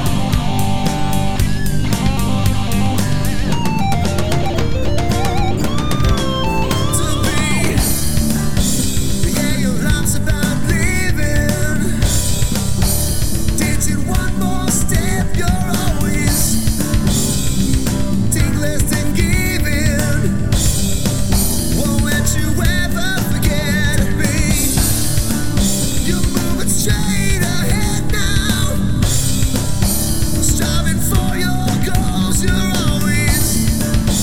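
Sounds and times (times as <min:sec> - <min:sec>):
acoustic harmony karaoke music: 0:00.0 - 0:34.2.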